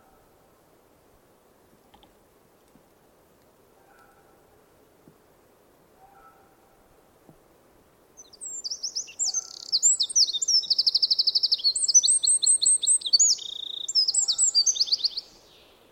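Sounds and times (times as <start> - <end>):
Eurasian wren Troglodytes troglodytes song with trills and rattles: 8.2 - 15.9.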